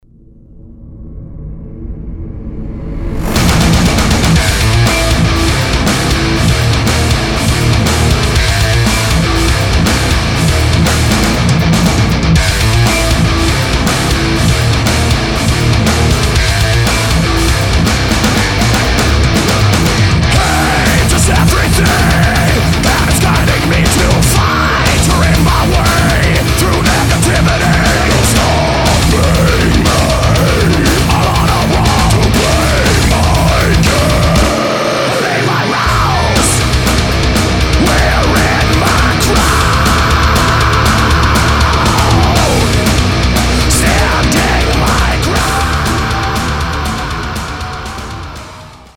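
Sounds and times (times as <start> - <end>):
guitar through Mesa and Marshall amplifiers mixed: 1.6 - 48.9.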